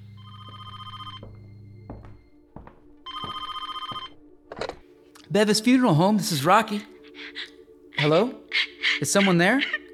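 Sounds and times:
old-fashioned telephone ringing: 0.0s - 1.8s, 3.1s - 4.2s
speech: 5.3s - 9.8s.

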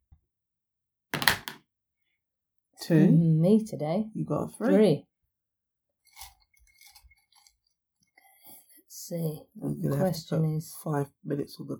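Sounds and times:
dice being rolled: 1.2s - 1.6s
speech: 2.8s - 5.1s, 9.1s - 11.7s.

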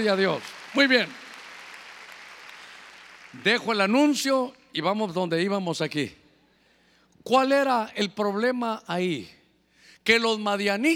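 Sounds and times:
speech: 0.0s - 1.2s, 3.3s - 6.2s, 7.2s - 9.4s, 10.0s - 10.9s
audience clapping loudly: 0.0s - 4.2s.

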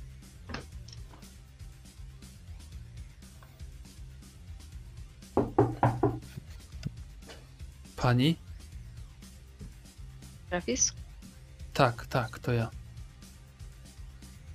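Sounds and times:
knocking on a door: 5.4s - 6.3s
speech: 8.0s - 8.4s, 10.6s - 11.0s, 11.8s - 12.8s.

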